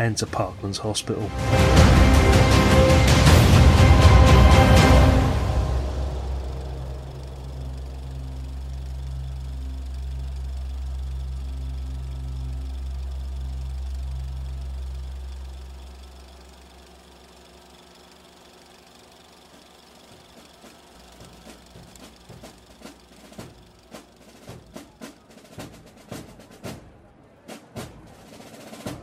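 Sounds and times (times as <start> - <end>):
speech: 0.0 - 3.2
limousine engine speeding away: 1.3 - 25.0.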